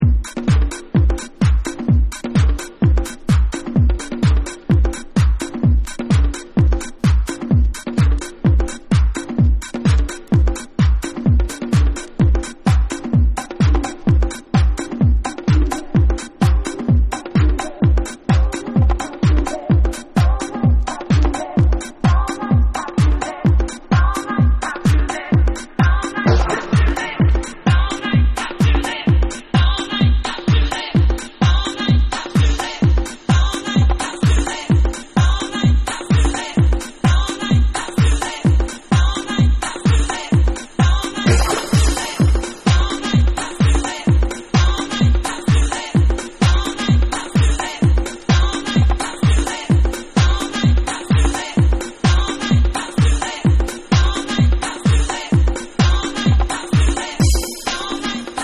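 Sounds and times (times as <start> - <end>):
dub house music: 0.0 - 58.4.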